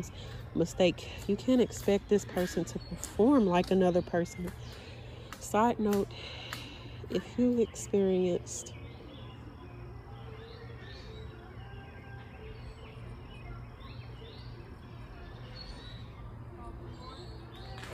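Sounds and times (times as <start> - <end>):
speech: 0.0 - 8.8
mosquitoes and other insects humming outdoors: 0.0 - 17.9.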